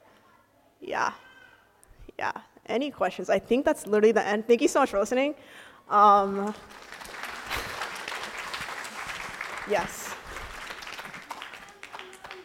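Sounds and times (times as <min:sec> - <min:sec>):
speech: 0:00.8 - 0:01.3, 0:02.1 - 0:07.1, 0:09.7 - 0:10.0
audience applause: 0:06.5 - 0:12.4.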